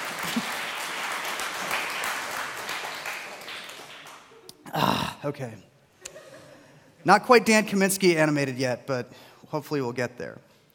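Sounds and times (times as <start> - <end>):
audience applause: 0.0 - 4.4
speech: 5.2 - 5.7, 7.0 - 10.5.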